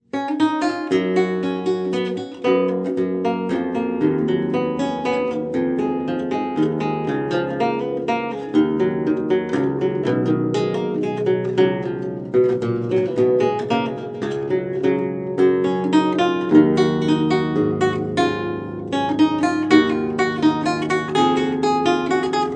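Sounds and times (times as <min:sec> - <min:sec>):
lute playing courante: 0:00.6 - 0:22.5.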